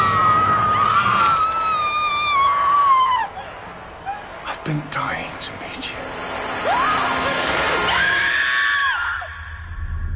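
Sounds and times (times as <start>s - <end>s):
woman screaming: 0.0s - 3.4s, 6.6s - 9.4s.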